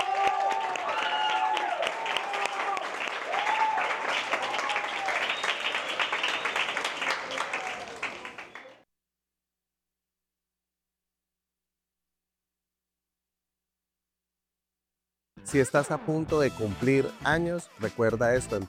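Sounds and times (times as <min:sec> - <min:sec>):
audience applause: 0:00.0 - 0:08.8
voices cheering: 0:00.0 - 0:08.8
speech: 0:15.5 - 0:18.6.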